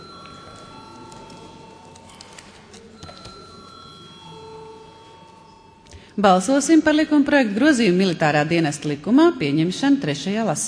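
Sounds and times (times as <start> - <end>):
parliamentary voting bell ringing: 0.0 - 8.4
speech: 6.2 - 10.6.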